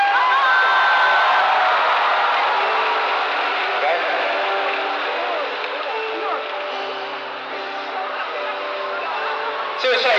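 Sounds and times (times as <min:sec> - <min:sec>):
audience cheering: 0:00.0 - 0:06.0
audience applause: 0:00.0 - 0:09.8.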